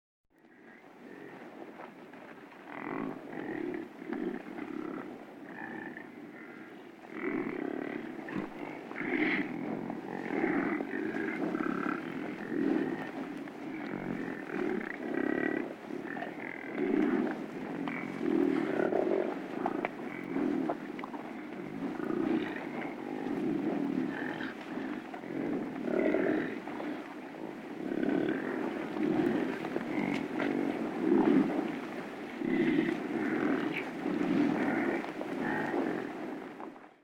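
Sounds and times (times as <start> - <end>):
buffalo: 0.4 - 37.0.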